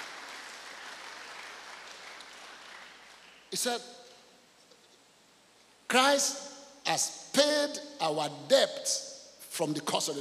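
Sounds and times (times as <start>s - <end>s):
audience clapping hands: 0.0s - 3.5s
speech: 3.5s - 4.0s, 5.9s - 10.1s.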